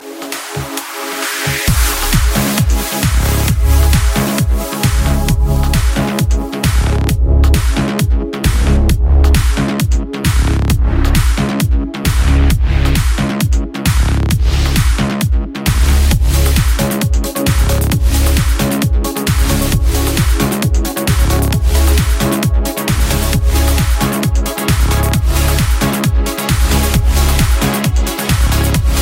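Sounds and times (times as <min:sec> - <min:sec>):
trance music: 0:00.0 - 0:29.0.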